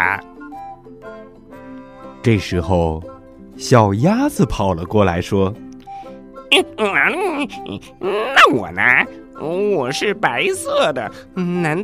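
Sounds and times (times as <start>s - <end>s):
person imitating frog croak: 0.0s - 0.4s, 6.5s - 9.2s
speech: 2.2s - 5.6s, 6.5s - 11.8s.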